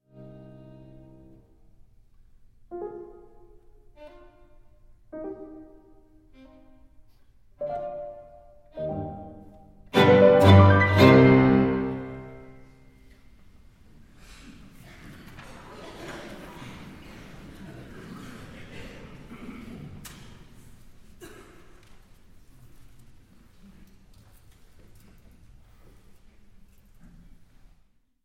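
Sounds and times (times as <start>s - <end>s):
piano trio playing in E flat major: 2.7s - 4.0s, 5.1s - 6.6s, 7.6s - 12.7s
laughter: 14.9s - 19.9s.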